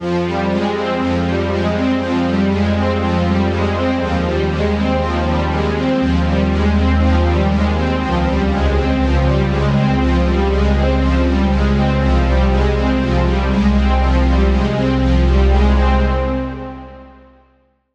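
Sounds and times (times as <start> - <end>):
synth lead from Spire synthesizer: 0.0 - 17.2.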